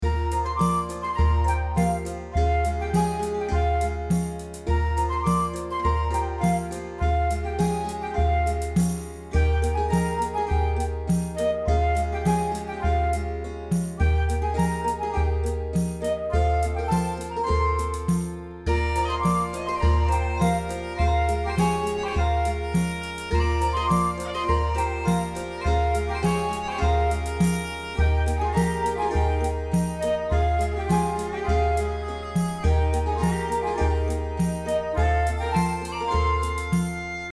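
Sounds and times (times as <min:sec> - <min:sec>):
playful forest music loop: 0:00.0 - 0:37.3.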